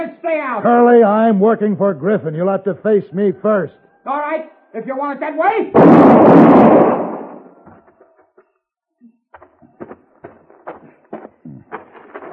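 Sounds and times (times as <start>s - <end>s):
speech: 0.0s - 7.1s
gunshot in an Old West gunfight: 5.8s - 7.6s.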